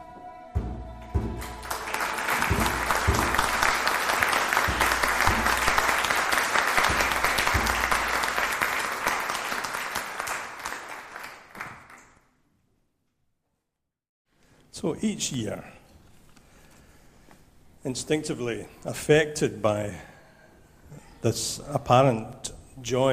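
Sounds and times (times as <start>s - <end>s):
crowd applause: 1.4s - 12.1s
speech: 14.9s - 15.8s, 17.8s - 20.1s, 21.2s - 23.1s.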